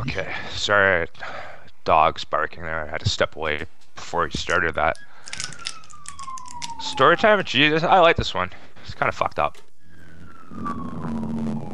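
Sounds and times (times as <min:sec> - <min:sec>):
speech: 0:00.1 - 0:05.7, 0:06.8 - 0:09.7, 0:10.5 - 0:11.4
fire truck siren passing: 0:04.9 - 0:08.2, 0:09.9 - 0:11.7.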